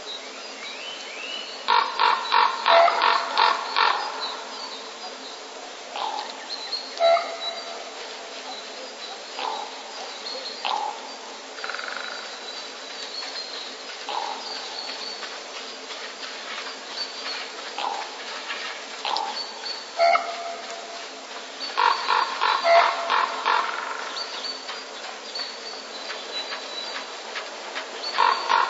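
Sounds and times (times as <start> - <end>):
common raven courtship calls: 1.7 - 4.5, 5.9 - 6.4, 7.0 - 7.9, 9.3 - 9.8, 14.1 - 14.8, 17.7 - 18.2, 19.0 - 21.0, 21.6 - 24.4, 28.0 - 28.6.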